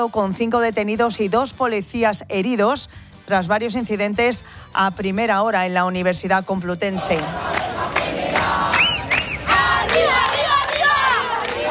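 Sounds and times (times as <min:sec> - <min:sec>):
speech: 0:00.0 - 0:08.8
striking protesters shouting in a square: 0:07.2 - 0:11.6
whistles: 0:08.7 - 0:09.6.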